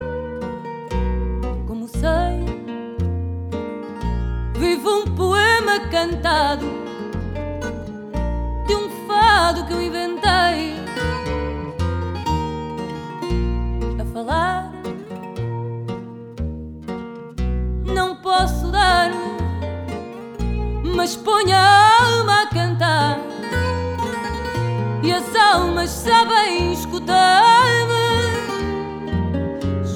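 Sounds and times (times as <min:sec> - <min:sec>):
fado music: 0:00.0 - 0:29.9.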